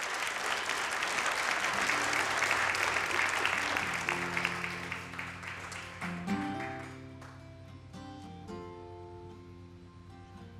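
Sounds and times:
crowd applauding: 0:00.0 - 0:07.5.

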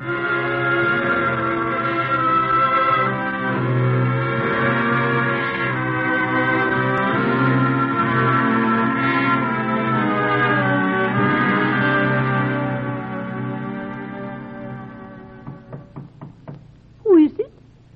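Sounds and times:
droning musical tone: 0:00.0 - 0:16.1
knocking on a door: 0:15.4 - 0:16.8.

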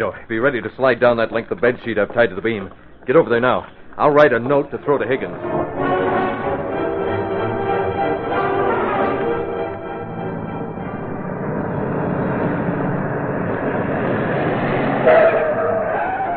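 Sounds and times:
speech: 0:00.0 - 0:05.6
car driving up a hill and stopping: 0:04.2 - 0:16.3.

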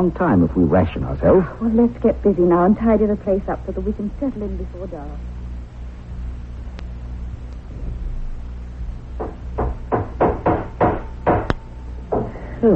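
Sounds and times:
speech: 0:00.0 - 0:05.3
low rumble and hiss: 0:00.0 - 0:12.7
hammering iron nails into a boat: 0:09.2 - 0:12.3.

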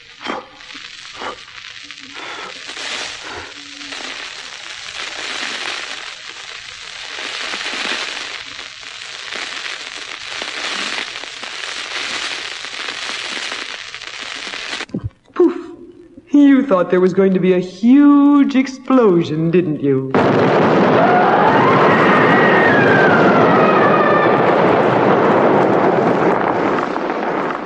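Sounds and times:
flaring embers crackling and popping: 0:00.0 - 0:15.2, 0:20.1 - 0:27.6
blowing a dying fire back into life: 0:00.0 - 0:16.2, 0:20.2 - 0:27.6
speech: 0:16.4 - 0:20.8.

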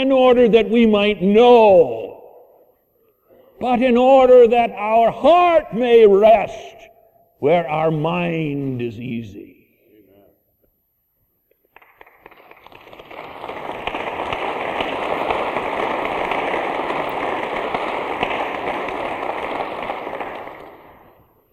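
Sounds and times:
speech: 0:00.0 - 0:02.1, 0:03.6 - 0:06.8, 0:07.4 - 0:09.6
large crowd clapping in a church: 0:11.6 - 0:21.5.

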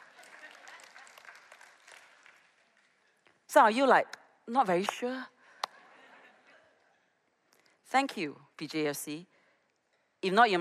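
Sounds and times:
audience clapping: 0:00.0 - 0:03.4
speech: 0:03.5 - 0:05.3, 0:07.9 - 0:09.3, 0:10.2 - 0:10.5.

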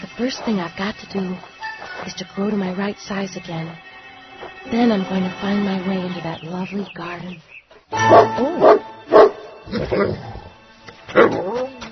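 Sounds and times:
speech: 0:00.2 - 0:03.9, 0:04.6 - 0:08.8, 0:09.7 - 0:10.4
puppy barking: 0:08.0 - 0:09.6.

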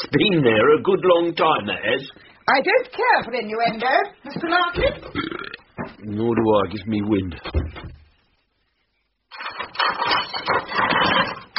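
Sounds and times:
speech: 0:00.1 - 0:08.0
dishes banging and clattering: 0:09.3 - 0:11.5.

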